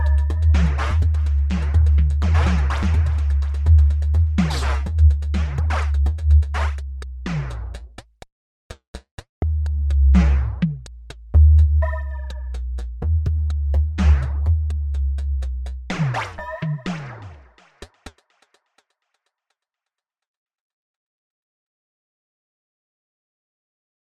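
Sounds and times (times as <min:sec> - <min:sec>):
filtered synth drums: 0:00.0 - 0:08.0, 0:09.4 - 0:17.6.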